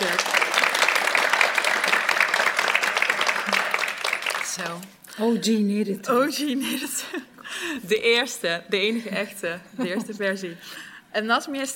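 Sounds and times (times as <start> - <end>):
audience applause: 0.0 - 4.8
speech: 4.6 - 11.7.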